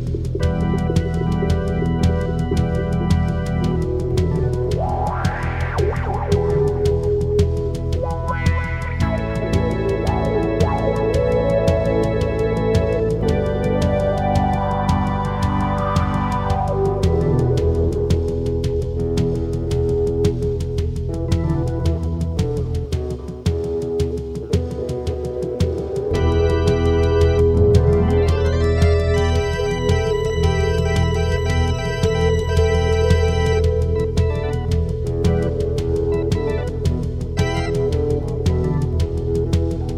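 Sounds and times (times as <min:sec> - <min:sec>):
instrumental guitar music: 0:00.0 - 0:39.9.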